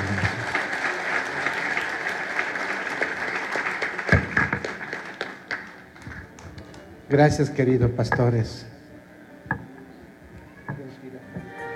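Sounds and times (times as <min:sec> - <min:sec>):
applause: 0:00.0 - 0:06.9
speech: 0:07.1 - 0:08.7.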